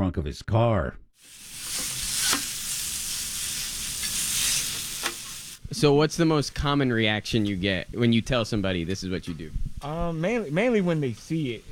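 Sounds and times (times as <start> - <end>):
speech: 0.1 - 1.4, 5.7 - 11.7
hibachi food sizzling on a hot grill: 1.2 - 5.6
utensil scraping and stirring: 1.2 - 5.6.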